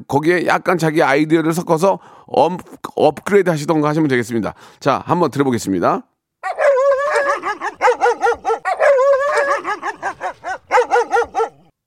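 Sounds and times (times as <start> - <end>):
speech: 0.0 - 6.6
two dogs barking: 6.4 - 11.8.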